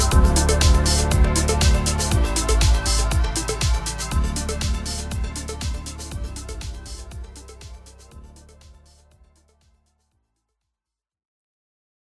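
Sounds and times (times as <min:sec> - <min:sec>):
upbeat music: 0:00.0 - 0:09.4.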